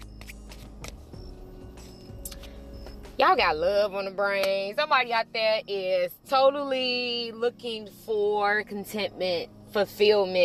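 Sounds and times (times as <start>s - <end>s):
deck of cards being shuffled: 0.0s - 1.1s
speech: 3.2s - 10.4s.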